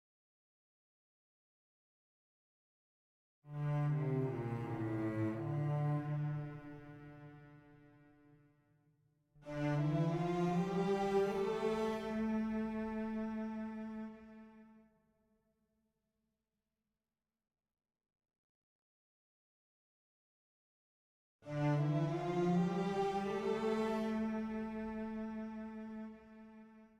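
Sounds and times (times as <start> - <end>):
interactive music: 3.4 - 15.4, 21.4 - 26.9.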